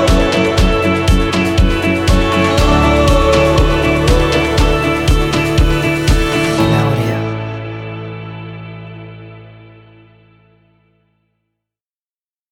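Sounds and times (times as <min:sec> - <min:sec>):
uplifting action pop music: 0:00.0 - 0:09.9.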